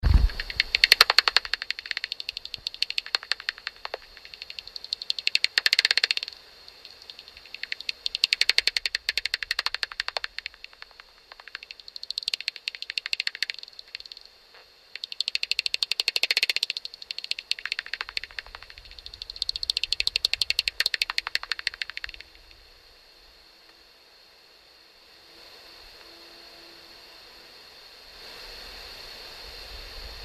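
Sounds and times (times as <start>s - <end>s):
common pipistrelle calls through ultrasonic bat detector: 0.2s - 14.2s, 15.0s - 22.2s.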